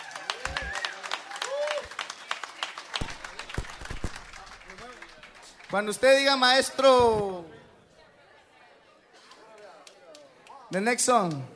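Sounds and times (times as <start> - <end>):
whistles and cheers: 0.0 - 5.6
crowd applause: 0.0 - 6.2
speech: 5.7 - 7.5, 10.7 - 11.5.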